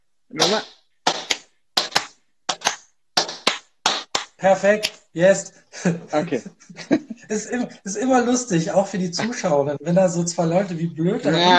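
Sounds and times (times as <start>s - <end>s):
speech: 0.3s - 0.8s, 4.4s - 11.5s
two people clapping in rhythm: 0.4s - 5.1s
laughter: 4.4s - 11.5s.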